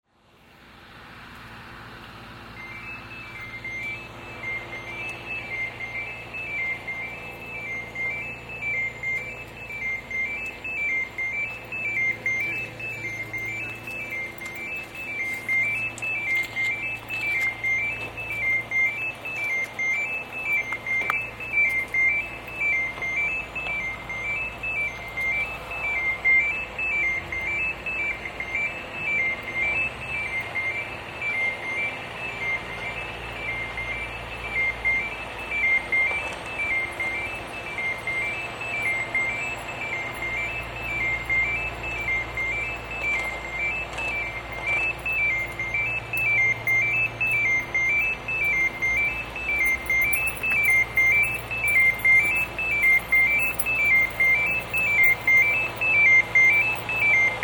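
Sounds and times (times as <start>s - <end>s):
road surfacing work: 0.2s - 57.4s.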